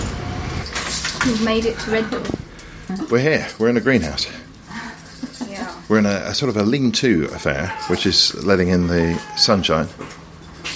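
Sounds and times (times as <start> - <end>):
large set of keys jangling: 0.6 - 1.6, 2.6 - 5.9, 10.0 - 10.7
speech: 1.2 - 4.5, 5.9 - 10.2.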